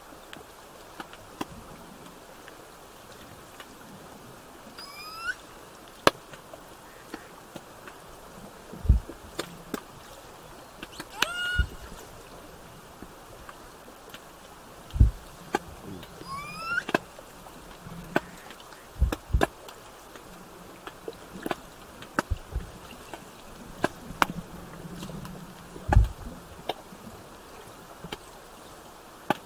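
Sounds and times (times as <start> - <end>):
underwater background noise: 0.0 - 29.4
killer whale tonal call: 4.8 - 5.6, 10.9 - 12.1, 16.0 - 17.0
low thumps: 8.8 - 9.2, 14.9 - 15.2, 19.0 - 19.5, 25.9 - 26.2.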